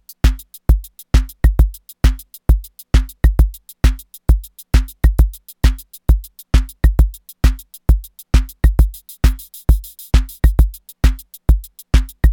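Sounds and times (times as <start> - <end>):
Volca Beats drum machine beat: 0.0 - 12.3.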